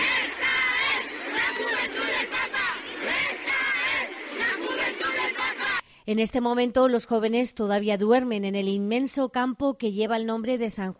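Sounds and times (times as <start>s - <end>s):
large crowd chanting a rhythmic cheer: 0.0s - 5.8s
speech: 6.1s - 10.9s.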